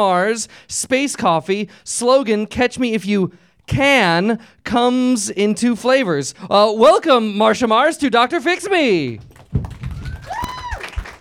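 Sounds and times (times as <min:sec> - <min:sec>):
speech: 0:00.0 - 0:09.4
weak round of applause: 0:08.9 - 0:11.1.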